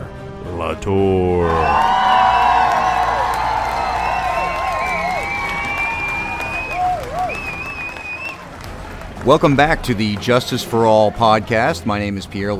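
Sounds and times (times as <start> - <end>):
speech: 0.6 - 2.0, 9.2 - 12.5
audience clapping to welcome podcast hosts: 1.4 - 11.6
audience whoops and whistles: 1.6 - 8.4.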